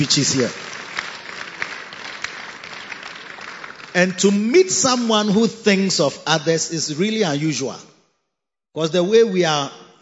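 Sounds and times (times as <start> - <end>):
speech: 0.0 - 0.7, 4.0 - 7.9, 8.7 - 10.0
audience clapping: 0.0 - 5.4.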